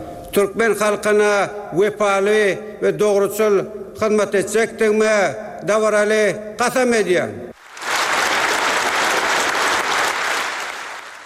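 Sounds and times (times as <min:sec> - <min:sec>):
speech: 0:00.4 - 0:07.4
government officials and deputies applauding Turkmenistan's new president: 0:07.6 - 0:11.2.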